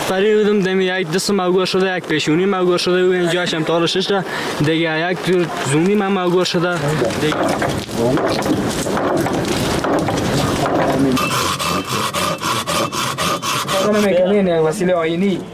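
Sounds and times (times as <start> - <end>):
speech: 0.1 - 12.9, 13.8 - 15.5
carpenter rasping and scraping fruit-tree wood: 8.6 - 14.2.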